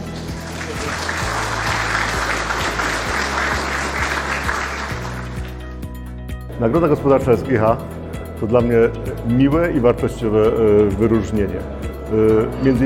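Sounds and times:
audience applause: 0.0 - 5.8
speech: 6.6 - 12.8.

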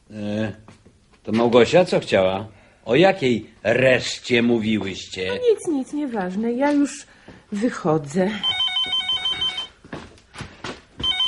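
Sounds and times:
speech: 0.1 - 0.6, 1.3 - 9.0
telephone ringing: 8.4 - 9.8, 11.0 - 11.2.

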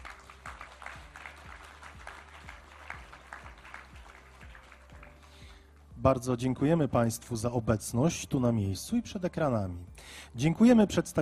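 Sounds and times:
audience applause: 0.0 - 5.5
speech: 6.0 - 11.2.

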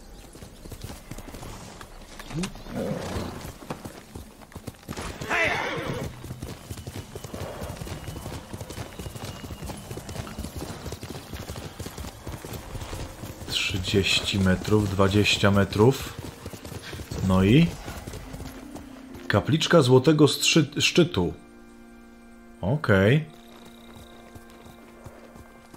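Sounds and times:
horse hooves clip-clopping: 0.0 - 19.8, 23.3 - 25.7
speech: 2.4 - 3.4, 13.9 - 16.2, 17.3 - 17.8, 19.3 - 21.4, 22.6 - 23.4
horse whinnying: 5.1 - 6.2.

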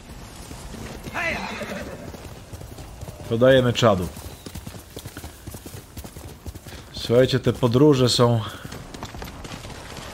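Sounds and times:
horse hooves clip-clopping in a video game: 0.0 - 10.1
speech: 1.2 - 1.8, 3.3 - 4.2, 7.1 - 8.6
horse whinny in a video game: 1.2 - 2.2.

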